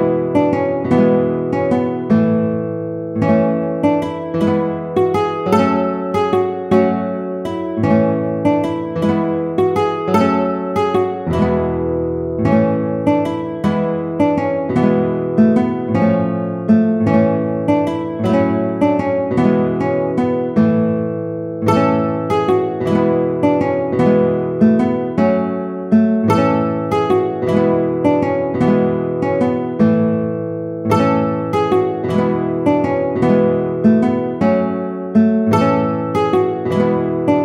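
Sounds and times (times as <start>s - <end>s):
guitar piece: 0.0s - 37.4s.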